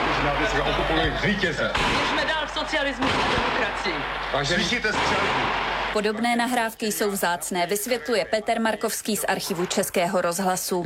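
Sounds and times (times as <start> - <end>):
speech: 0.2 - 10.8
gunfire in an old radio recording: 1.7 - 4.2, 4.8 - 6.0.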